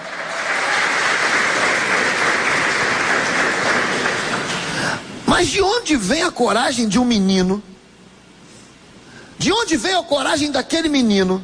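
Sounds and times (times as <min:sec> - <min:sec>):
audience applause: 0:00.0 - 0:05.0
speech: 0:05.4 - 0:07.7, 0:09.4 - 0:11.4.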